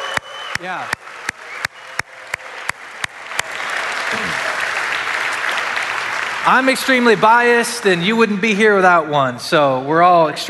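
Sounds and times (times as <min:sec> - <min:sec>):
audience cheering and applauding: 0:00.0 - 0:08.3
speech: 0:00.6 - 0:01.0, 0:06.4 - 0:10.4.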